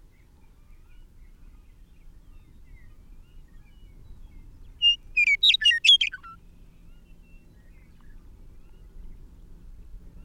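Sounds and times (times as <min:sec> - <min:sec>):
bird song: 0:00.0 - 0:10.2.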